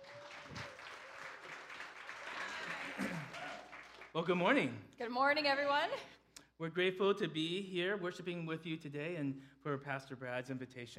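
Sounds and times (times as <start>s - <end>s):
audience applause: 0.0s - 4.2s
speech: 4.2s - 10.9s.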